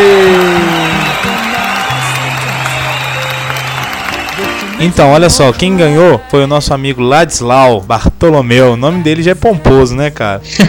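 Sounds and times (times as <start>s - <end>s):
round of applause: 0.0s - 5.7s
crowd cheering: 0.0s - 6.4s
speech: 4.8s - 10.6s.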